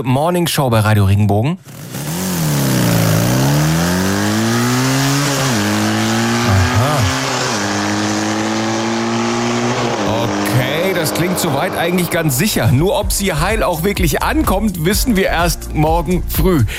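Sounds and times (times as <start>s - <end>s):
speech: 0.0s - 2.0s, 11.0s - 16.7s
motocross bike engine revving: 1.6s - 13.8s.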